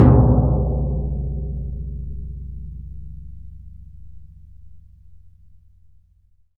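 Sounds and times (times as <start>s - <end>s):
Synclavier percussion in C sharp: 0.0s - 1.9s.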